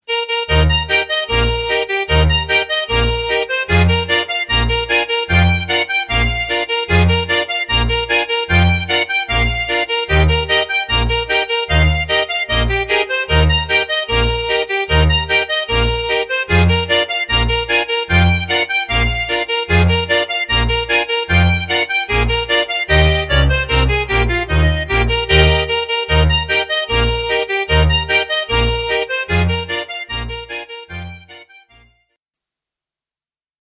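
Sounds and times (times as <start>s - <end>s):
polka music: 0.1s - 32.0s.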